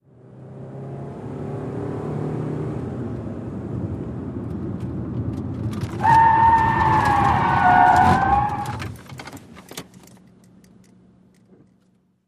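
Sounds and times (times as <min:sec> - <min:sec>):
sedan skidding: 0:05.6 - 0:09.0.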